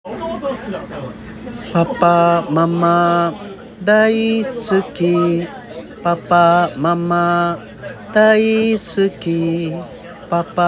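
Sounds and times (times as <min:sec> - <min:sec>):
guide vocal singing: 0:01.7 - 0:10.6.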